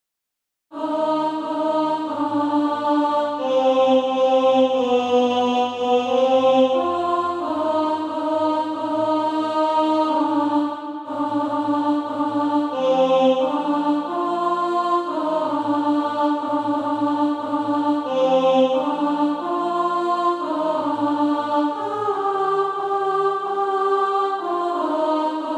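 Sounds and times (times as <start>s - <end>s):
alto voice singing: 0.7s - 25.5s.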